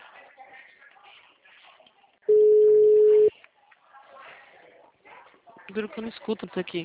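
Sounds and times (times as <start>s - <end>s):
phone call tone: 2.3s - 3.3s
speech: 5.8s - 6.8s.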